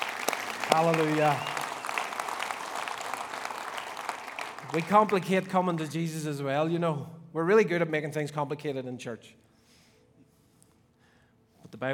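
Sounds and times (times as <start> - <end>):
round of applause: 0.0 - 6.2
speech: 0.7 - 1.6, 4.7 - 9.4, 11.7 - 11.9.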